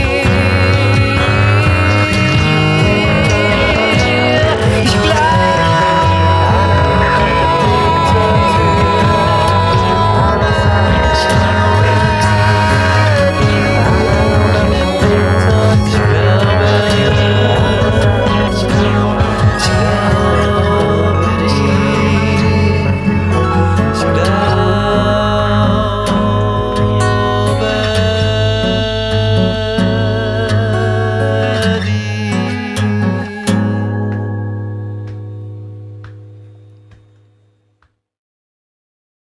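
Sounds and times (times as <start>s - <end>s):
modular analog synthesizer music: 0.0s - 37.0s.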